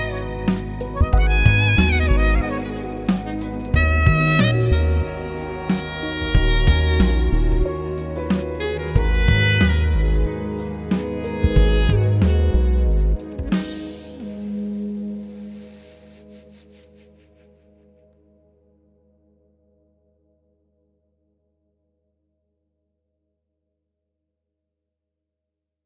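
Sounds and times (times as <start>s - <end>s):
soprano saxophone: 0.0s - 17.5s.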